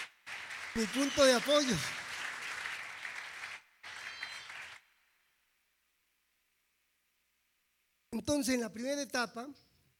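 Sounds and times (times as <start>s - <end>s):
crowd applause: 0.0s - 4.8s
speech: 0.8s - 2.0s, 8.2s - 9.7s.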